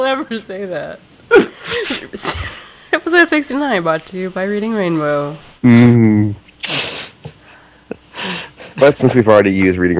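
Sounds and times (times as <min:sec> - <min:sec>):
speech: 0:00.1 - 0:06.9, 0:08.8 - 0:09.9
person coughing fit: 0:01.3 - 0:02.7.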